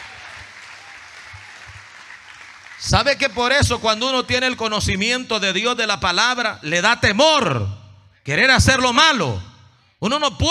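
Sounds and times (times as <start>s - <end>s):
congregation clapping at a church service: 0.0s - 4.8s
speech: 2.8s - 10.5s.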